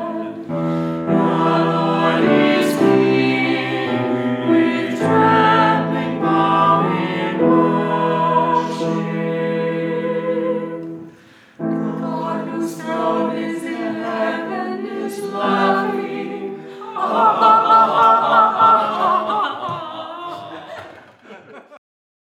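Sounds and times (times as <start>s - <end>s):
responsorial setting singing: 0.0s - 20.6s
person laughing: 19.7s - 21.8s.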